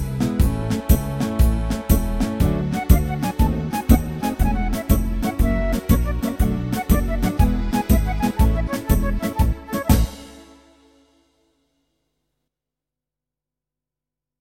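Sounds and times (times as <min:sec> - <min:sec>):
tarantella backing track: 0:00.0 - 0:10.9.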